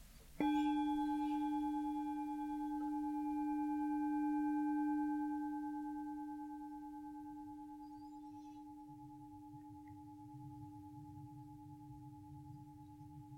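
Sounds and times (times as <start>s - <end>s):
meditation bell ringing: 0.4s - 13.3s.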